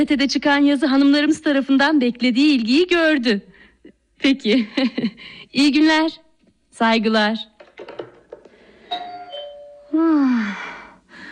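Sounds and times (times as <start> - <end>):
speech: 0.0 - 3.5, 4.2 - 6.2, 6.8 - 7.5, 9.9 - 10.7
doorbell ringing: 8.8 - 10.0.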